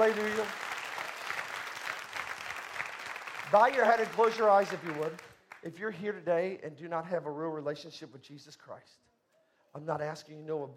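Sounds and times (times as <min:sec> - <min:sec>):
speech: 0:00.0 - 0:00.7, 0:03.5 - 0:09.1, 0:09.7 - 0:10.7
church congregation clapping hands in praise: 0:00.0 - 0:05.7.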